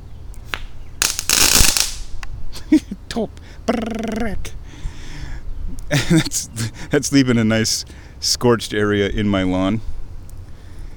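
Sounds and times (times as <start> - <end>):
sharp firework pops: 0.4 - 2.3
glitter bomb firework crackling on a freshly mown lawn: 1.0 - 2.2
speech: 2.7 - 4.6, 5.9 - 9.9.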